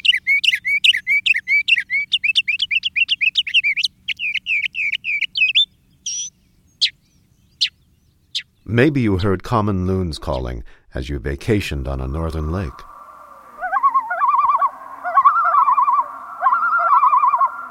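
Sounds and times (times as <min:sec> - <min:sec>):
mockingbird song: 0:00.0 - 0:08.7, 0:12.2 - 0:17.6
speech: 0:08.7 - 0:12.9.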